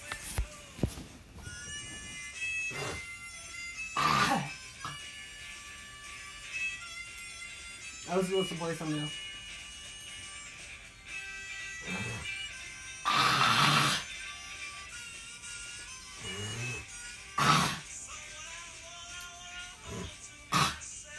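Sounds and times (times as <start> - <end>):
faint steady tonal hum: 0.0 - 17.4
wet spitting and hawking: 2.7 - 3.1, 4.0 - 5.0, 13.0 - 14.2, 16.2 - 18.0, 19.8 - 20.9
speech: 8.1 - 9.3.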